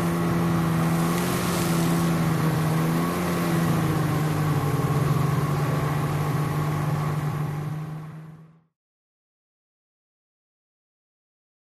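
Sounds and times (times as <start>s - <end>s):
jet ski engine recorded onboard: 0.0s - 8.7s.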